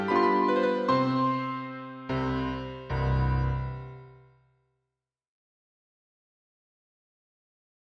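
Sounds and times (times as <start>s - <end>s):
waltz music: 0.0s - 4.2s.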